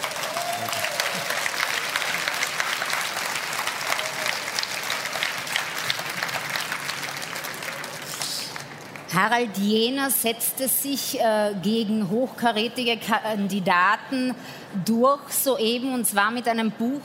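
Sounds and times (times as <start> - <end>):
audience applause: 0.0 - 9.1
speech: 9.1 - 17.0.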